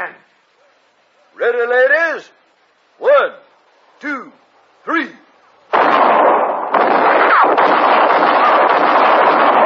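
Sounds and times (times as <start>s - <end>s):
speech: 1.5s - 2.4s
gunshot sound effect in a radio western drama: 5.7s - 9.6s.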